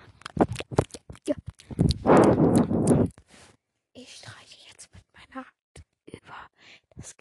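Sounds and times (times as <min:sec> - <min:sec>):
lip smacking into microphone: 0:00.2 - 0:03.3.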